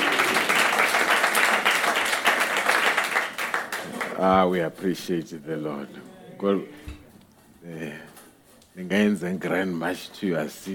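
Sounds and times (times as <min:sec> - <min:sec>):
audience applause: 0:00.0 - 0:04.3
speech: 0:04.2 - 0:07.0, 0:07.6 - 0:08.0, 0:08.8 - 0:10.7.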